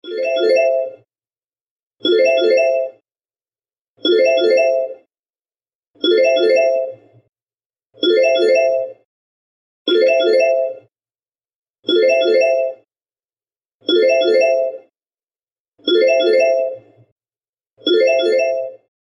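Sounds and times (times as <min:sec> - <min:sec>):
Facebook video call ringtone: 0:00.0 - 0:01.1, 0:02.0 - 0:03.0, 0:04.0 - 0:05.1, 0:06.0 - 0:07.1, 0:08.0 - 0:09.0, 0:09.9 - 0:10.9, 0:11.9 - 0:12.9, 0:13.8 - 0:14.9, 0:15.8 - 0:17.0, 0:17.8 - 0:18.9.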